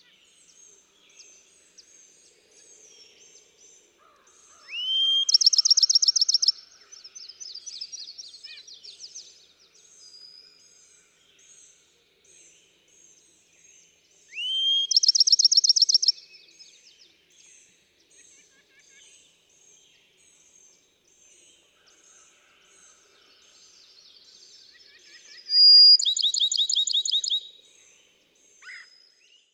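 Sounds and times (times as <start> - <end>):
other birds chirping softly: 0.0 - 29.5
Bachman's sparrow singing: 4.6 - 9.4, 14.3 - 16.6, 23.7 - 27.6.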